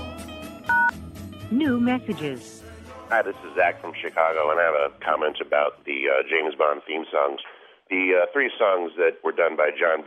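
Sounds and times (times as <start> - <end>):
telephone dialing touch-tone beep: 0.7 - 1.0
speech: 1.5 - 10.0.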